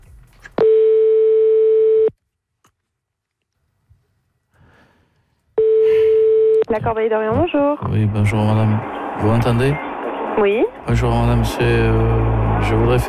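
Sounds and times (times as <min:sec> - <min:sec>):
phone line ringing tone while a call connects: 0:00.6 - 0:02.1, 0:05.6 - 0:06.7
speech: 0:06.8 - 0:13.0.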